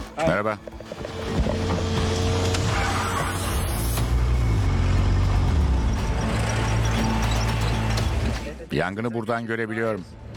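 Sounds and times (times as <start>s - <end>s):
speech: 0.2s - 0.8s, 8.7s - 10.2s
off-road vehicle driving through dry terrain: 0.6s - 8.7s.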